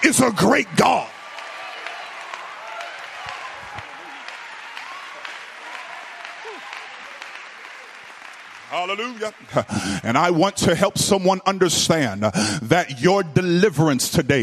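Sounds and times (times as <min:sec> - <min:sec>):
speech: 0:00.0 - 0:01.2, 0:08.7 - 0:14.4
audience clapping: 0:00.0 - 0:10.9.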